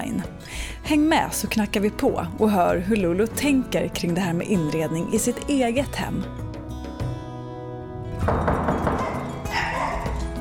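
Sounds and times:
speech: 0:00.0 - 0:06.4, 0:08.2 - 0:08.6
dog barking at new arrivals: 0:08.8 - 0:10.3.

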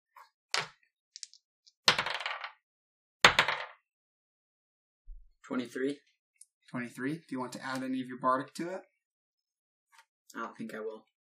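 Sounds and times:
dice rolling on a table: 0:00.5 - 0:02.6, 0:03.2 - 0:03.8
speech: 0:05.5 - 0:06.1, 0:06.7 - 0:08.9, 0:10.3 - 0:11.1.

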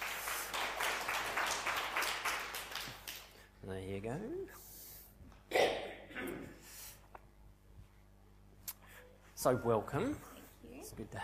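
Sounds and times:
audience applause: 0:00.0 - 0:03.3
speech: 0:03.7 - 0:04.7, 0:09.4 - 0:10.3, 0:10.9 - 0:11.2.

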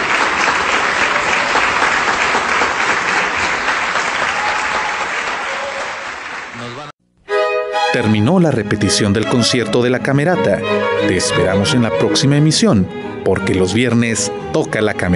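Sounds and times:
concert audience ovation applause: 0:00.0 - 0:06.9
speech: 0:08.0 - 0:15.1.

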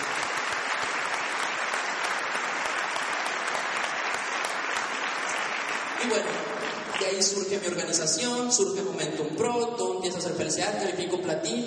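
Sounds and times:
audience applause for leaders: 0:00.0 - 0:07.8
speech: 0:06.0 - 0:11.6.

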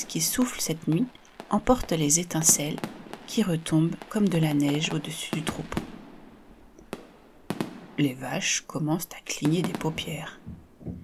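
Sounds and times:
speech: 0:00.0 - 0:05.9, 0:08.0 - 0:11.0
powerful firecracker exploding high overhead: 0:00.0 - 0:08.0.

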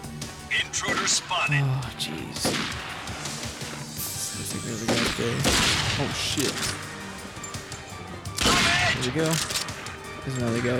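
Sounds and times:
speech: 0:00.7 - 0:03.0, 0:04.6 - 0:06.9, 0:09.0 - 0:09.6, 0:10.3 - 0:10.7
gunshots in a shooter video game: 0:02.4 - 0:03.2, 0:04.9 - 0:06.6, 0:08.4 - 0:09.8.

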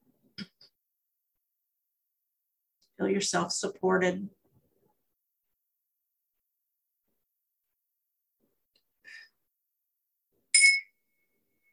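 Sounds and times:
speech: 0:03.0 - 0:04.4
tingsha bells ringing: 0:10.6 - 0:11.2.

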